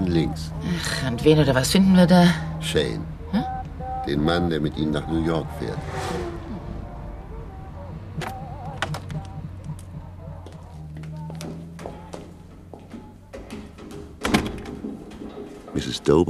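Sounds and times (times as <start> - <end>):
speech: 0.1 - 3.2, 4.0 - 6.2, 16.0 - 16.2
door being opened: 11.3 - 16.1.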